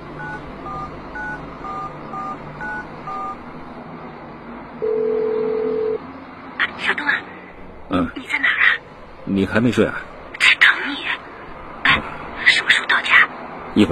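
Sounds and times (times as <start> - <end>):
low hum: 0.0 - 13.8
phone ringing tone: 0.2 - 3.4, 4.8 - 6.0
touch-tone beeps of mobile phone number being dialed: 0.2 - 3.4
speech: 7.9 - 8.3, 9.3 - 10.1.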